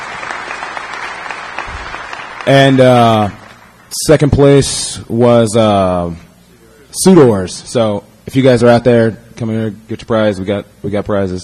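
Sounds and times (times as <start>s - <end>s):
crowd applauding at a competition prize-giving: 0.0s - 3.9s
speech: 2.4s - 6.3s, 7.0s - 11.4s.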